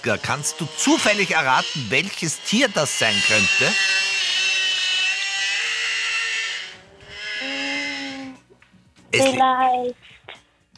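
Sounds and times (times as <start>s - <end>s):
speech: 0.0s - 4.2s, 9.2s - 10.2s
whale song: 2.8s - 8.4s.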